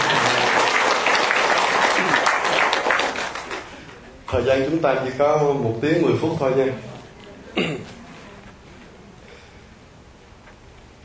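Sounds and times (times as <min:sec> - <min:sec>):
crowd applause: 0:00.0 - 0:04.1
speech: 0:04.3 - 0:06.9, 0:07.6 - 0:07.9
faint murmur of voices: 0:06.6 - 0:09.9.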